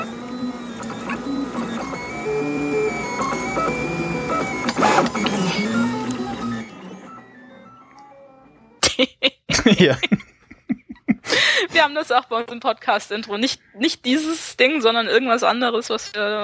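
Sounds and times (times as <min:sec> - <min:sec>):
3D printer stepper motors making funny noises: 0:00.0 - 0:08.2
laughter: 0:08.9 - 0:11.4
speech: 0:09.8 - 0:10.2, 0:11.8 - 0:16.4.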